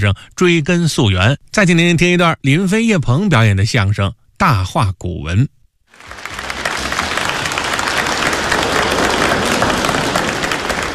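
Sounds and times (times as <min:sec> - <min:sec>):
speech: 0:00.0 - 0:06.1
crowd applause: 0:05.9 - 0:10.9.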